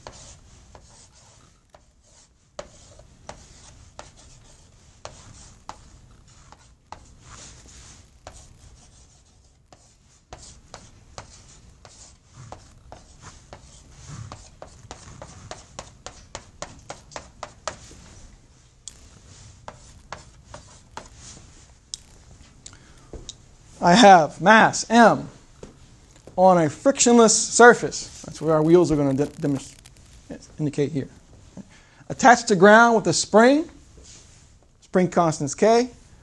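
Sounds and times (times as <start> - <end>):
drawing a diagram of a body on a board: 0.0 - 18.2, 18.9 - 21.4
speech: 23.8 - 25.4, 26.4 - 29.8, 30.6 - 31.2, 32.2 - 33.7, 34.9 - 36.0.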